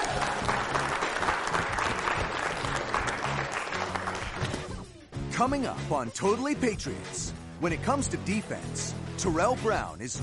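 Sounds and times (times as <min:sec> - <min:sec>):
crowd applause and cheering: 0:00.0 - 0:04.8
speech: 0:05.4 - 0:10.2.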